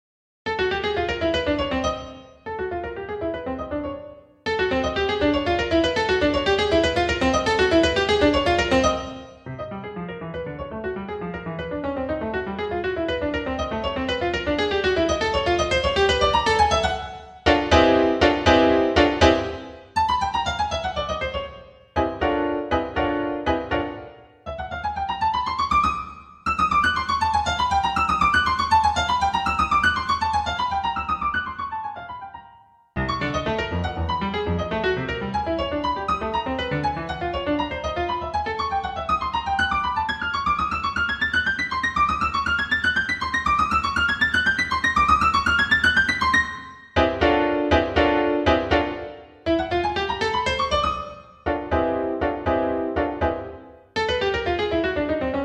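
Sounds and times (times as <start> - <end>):
piano: 0.4 - 55.4.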